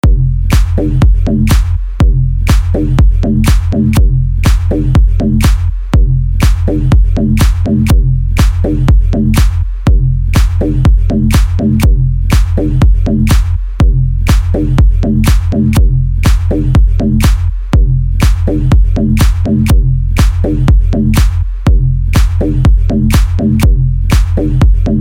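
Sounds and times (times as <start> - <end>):
deep funk house bass beat: 0.0 - 24.9.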